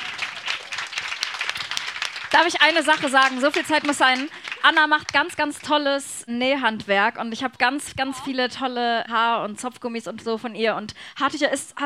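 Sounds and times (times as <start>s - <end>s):
audience applause: 0.0s - 5.7s
speech: 2.3s - 11.8s.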